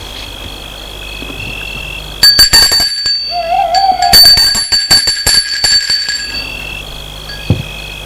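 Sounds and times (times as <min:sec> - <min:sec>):
doorbell ringing: 0:02.2 - 0:07.8.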